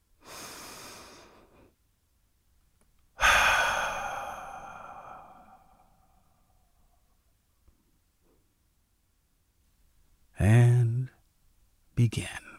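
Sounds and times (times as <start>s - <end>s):
deep breath: 0.2s - 1.8s, 3.2s - 6.8s
speech: 12.0s - 12.5s.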